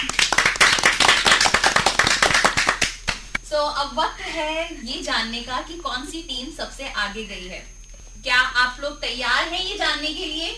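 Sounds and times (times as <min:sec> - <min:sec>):
audience clapping: 0:00.0 - 0:03.4
speech: 0:03.6 - 0:10.5.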